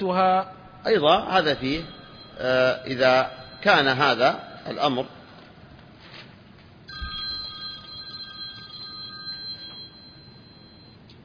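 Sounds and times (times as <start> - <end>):
speech: 0.0 - 5.2
low hum: 0.0 - 11.2
telephone electronic ringtone: 1.3 - 5.5, 6.9 - 11.0.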